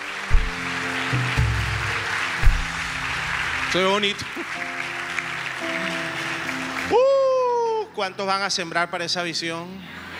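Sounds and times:
audience applause: 0.0 - 7.8
speech: 3.7 - 4.8, 8.0 - 10.0.

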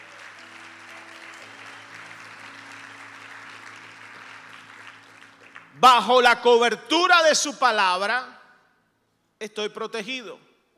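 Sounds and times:
loud applause: 0.0 - 5.8
speech: 5.8 - 8.4, 9.4 - 10.5.

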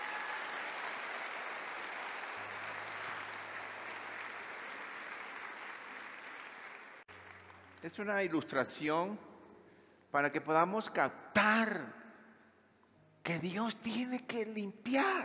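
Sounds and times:
audience applauding: 0.0 - 8.1
speech: 7.8 - 9.3, 10.1 - 12.0, 13.3 - 15.2.

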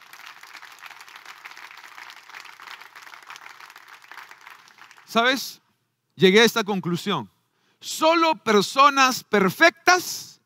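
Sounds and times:
audience applause: 0.0 - 5.1
speech: 5.1 - 5.6, 6.2 - 10.3.

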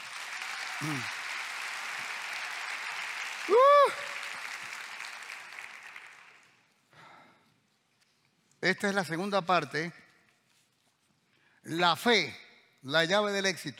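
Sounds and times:
loud rising-and-falling cheer: 0.0 - 5.7
audience applause: 0.0 - 6.6
short low vocal sound: 0.8 - 1.1
speech: 0.8 - 1.2, 8.7 - 10.0, 11.7 - 13.7.

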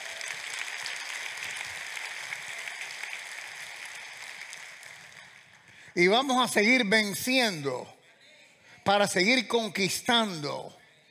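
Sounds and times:
audience applauding: 0.0 - 7.1
speech: 6.0 - 8.0, 8.8 - 10.8.

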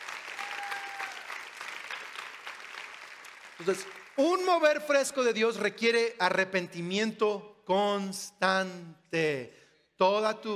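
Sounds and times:
church audience applause: 0.0 - 4.7
speech: 3.6 - 10.5.

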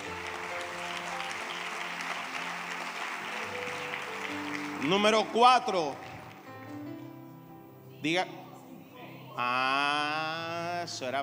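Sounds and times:
audience applause: 0.0 - 6.7
speech: 4.8 - 6.1, 8.0 - 8.4, 9.4 - 11.2.

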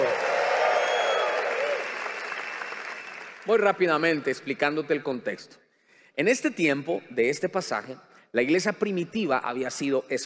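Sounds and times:
audience applauding: 0.0 - 3.8
speech: 3.4 - 5.6, 6.2 - 10.2.

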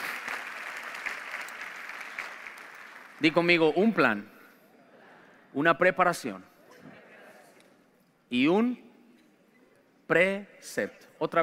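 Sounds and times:
audience applause: 0.0 - 3.5
speech: 3.2 - 4.3, 5.5 - 6.5, 8.3 - 8.8, 10.1 - 11.4.

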